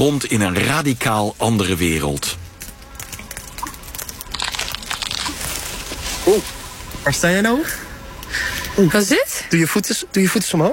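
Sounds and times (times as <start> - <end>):
speech: 0.0 - 2.4, 6.3 - 10.7
brittle eggshell crunching underfoot: 1.5 - 6.6.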